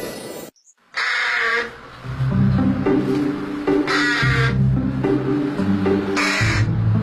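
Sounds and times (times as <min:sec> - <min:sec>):
carrion crow cawing: 0:00.9 - 0:01.8, 0:03.8 - 0:04.6, 0:06.1 - 0:06.7
low rumbling background: 0:01.8 - 0:07.0.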